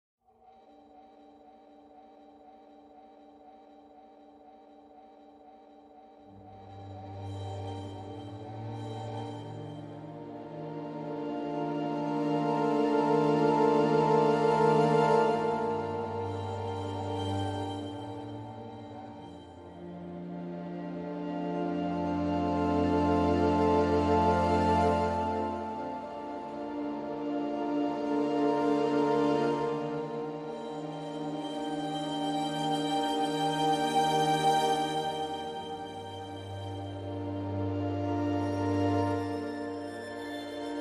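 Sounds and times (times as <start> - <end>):
strings: 6.3 - 40.7.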